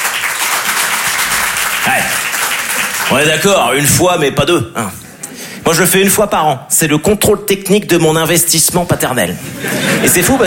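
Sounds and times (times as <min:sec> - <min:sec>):
comedy-show audience applause: 0:00.0 - 0:03.9
speech: 0:01.8 - 0:02.2, 0:03.1 - 0:05.0, 0:05.6 - 0:10.4
laughter: 0:09.4 - 0:10.4.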